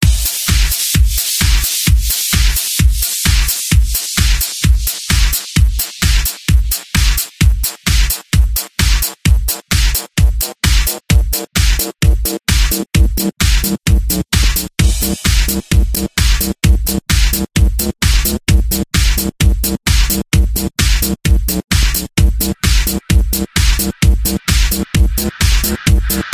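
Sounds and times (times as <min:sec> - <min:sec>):
rave bells electro remix: 0:00.0 - 0:26.3.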